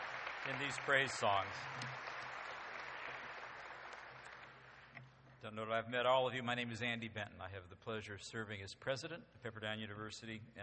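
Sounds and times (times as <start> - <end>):
audience applause: 0.0 - 5.0
speech: 0.4 - 2.1, 5.4 - 10.6.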